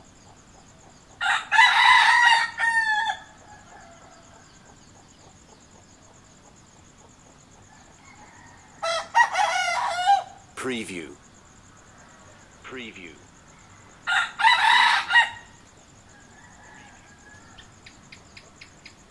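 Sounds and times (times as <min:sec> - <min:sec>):
rooster crowing: 0:01.2 - 0:04.8, 0:07.7 - 0:10.4, 0:13.6 - 0:17.9
speech: 0:10.7 - 0:11.2, 0:12.7 - 0:13.3.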